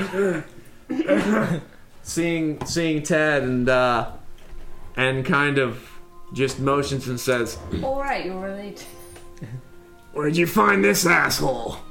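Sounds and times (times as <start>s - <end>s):
person imitating a lingering cough from a long cold: 0.1s - 1.7s
speech: 0.1s - 4.2s, 5.0s - 11.8s.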